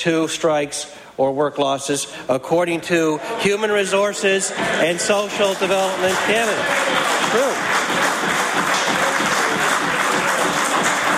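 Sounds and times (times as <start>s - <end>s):
speech: 0.0s - 8.0s
legislators applauding in a parliament chamber: 4.8s - 11.1s.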